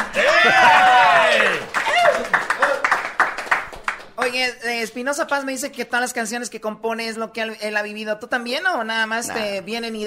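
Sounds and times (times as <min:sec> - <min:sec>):
applause and clapping: 0:00.0 - 0:04.4
speech: 0:04.4 - 0:10.0.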